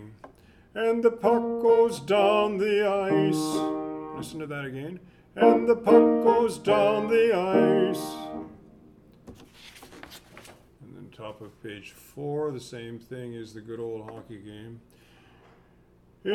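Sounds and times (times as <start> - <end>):
soprano singing: 0.8 - 4.4, 5.4 - 8.6.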